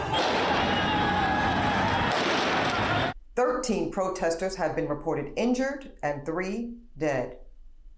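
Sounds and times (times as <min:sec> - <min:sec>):
Taliban firing on a protesting crowd: 0:00.1 - 0:01.1, 0:01.9 - 0:03.1
speech: 0:03.6 - 0:07.4.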